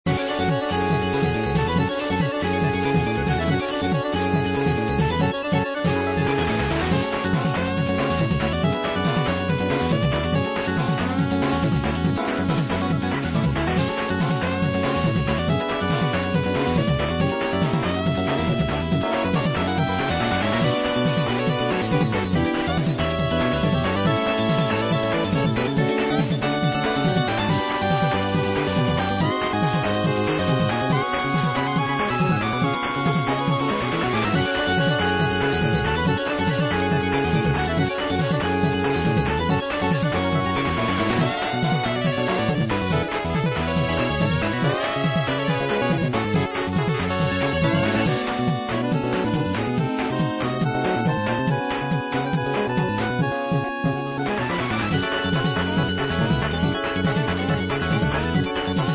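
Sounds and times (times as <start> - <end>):
riding beat background music: 0.1 - 58.9.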